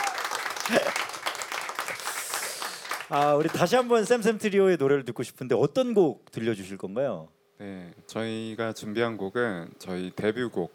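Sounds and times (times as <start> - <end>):
audience applause: 0.0 - 4.1
speech: 0.7 - 1.1, 3.1 - 10.7.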